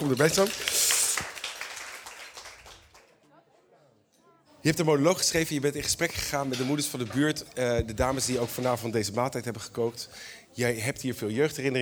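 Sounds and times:
audience applause: 0.0 - 3.2
speech: 0.1 - 0.9, 4.6 - 11.8.

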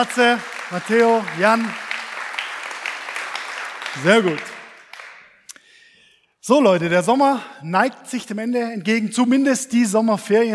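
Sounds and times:
speech: 0.0 - 1.8, 3.9 - 4.6, 6.4 - 10.5
audience applause: 0.0 - 5.4.

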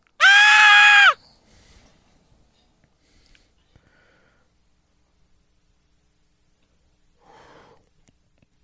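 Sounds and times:
man's high-pitched scream in Raiders of the Lost Ark: 0.2 - 1.2.

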